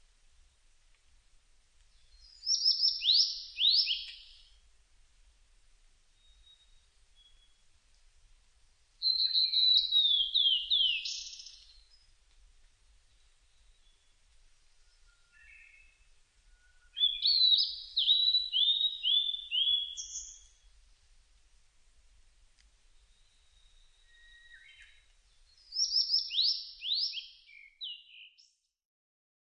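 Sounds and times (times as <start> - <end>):
ooruri singing: 2.0 - 4.6, 6.2 - 7.6, 9.0 - 12.1, 14.8 - 20.7, 23.0 - 28.7.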